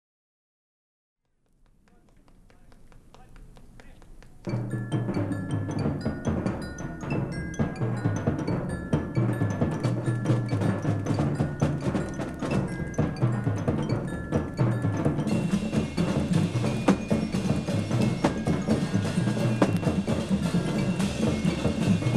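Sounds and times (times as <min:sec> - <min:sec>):
drum solo: 0:04.4 - 0:22.1.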